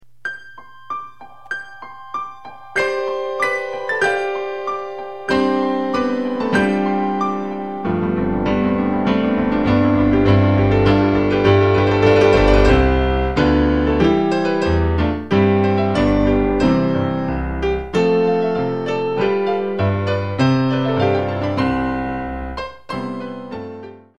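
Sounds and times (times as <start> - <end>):
advanced piano duet: 0.0 - 24.1.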